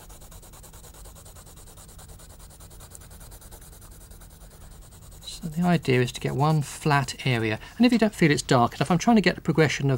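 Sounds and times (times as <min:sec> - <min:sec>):
pencil shading on paper: 0:00.0 - 0:07.7
speech: 0:05.4 - 0:09.9.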